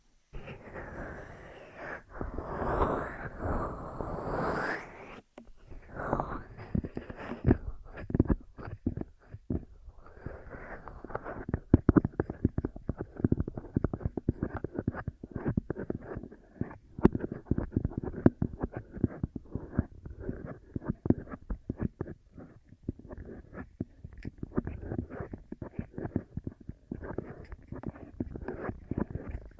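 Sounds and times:
ear massage rubbing and crackling: 0.3 - 29.5
ear cleaning taps, scratches and squishy clicks: 6.6 - 29.5.

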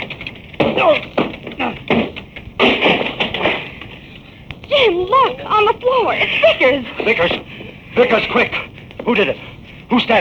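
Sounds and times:
wooden door cracking and splintering: 0.0 - 3.9
heavy blows pounding a wooden door being broken down: 0.0 - 4.0
speech: 0.8 - 2.0, 5.1 - 10.1.

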